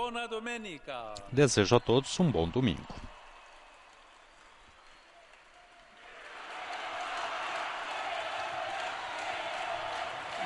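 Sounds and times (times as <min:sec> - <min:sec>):
speech: 0:00.0 - 0:03.0
large crowd applauding and cheering the Pope: 0:01.8 - 0:10.4.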